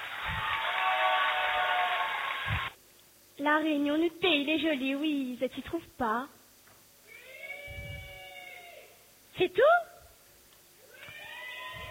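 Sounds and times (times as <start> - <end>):
audience applause: 0.0 - 2.8
speech: 3.4 - 6.4, 9.4 - 9.9.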